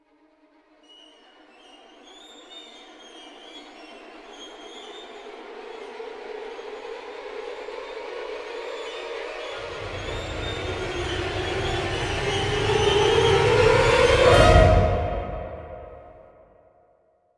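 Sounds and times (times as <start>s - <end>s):
hit: 9.6s - 16.4s.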